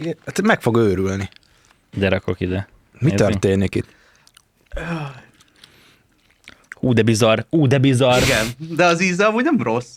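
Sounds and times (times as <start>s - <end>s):
speech: 0.0s - 4.0s, 4.8s - 5.2s, 6.8s - 9.9s
wet smacking chewing of gummy worm snacks: 4.2s - 4.7s, 5.3s - 6.8s
loud voiced burst: 8.1s - 8.6s.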